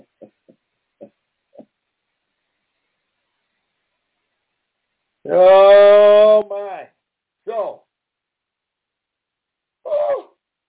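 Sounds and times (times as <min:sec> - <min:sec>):
speech: 0:05.3 - 0:06.5
yawn: 0:09.8 - 0:10.4.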